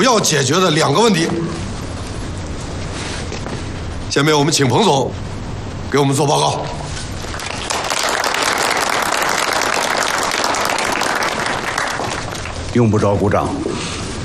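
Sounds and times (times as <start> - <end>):
speech: 0.1 - 1.7, 4.2 - 5.3, 5.9 - 6.8, 12.8 - 14.0
audience applause: 7.2 - 12.8.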